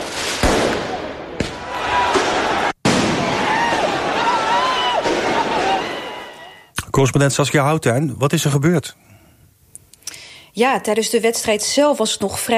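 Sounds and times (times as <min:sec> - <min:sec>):
fireworks exploding during street celebrations: 0:00.0 - 0:06.5
speech: 0:07.0 - 0:09.1, 0:10.6 - 0:12.5.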